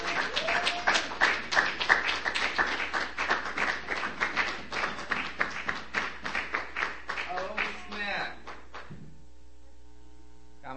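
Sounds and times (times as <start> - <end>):
audience whoops: 0.0 - 1.4
audience clapping at a Monday poetry night in Bellingham: 0.0 - 9.0.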